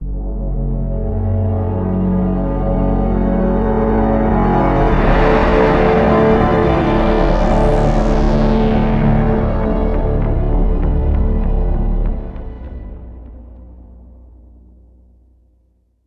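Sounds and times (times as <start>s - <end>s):
elevator music stinger: 0.1s - 12.7s.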